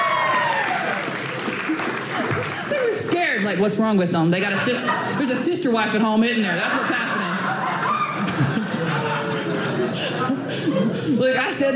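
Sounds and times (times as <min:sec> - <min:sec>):
voices whooping: 0:00.0 - 0:01.1, 0:07.8 - 0:08.3
crowd clapping: 0:00.0 - 0:03.5
laughter: 0:01.4 - 0:03.2, 0:04.5 - 0:05.7, 0:06.4 - 0:11.7
speech: 0:03.4 - 0:07.2, 0:10.7 - 0:11.7.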